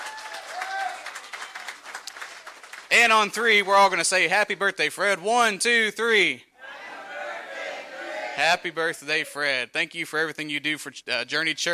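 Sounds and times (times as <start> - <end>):
faint whistles and cheers: 0.0 - 1.8
audience applause: 0.0 - 3.3
speech: 2.9 - 6.5, 8.4 - 11.7.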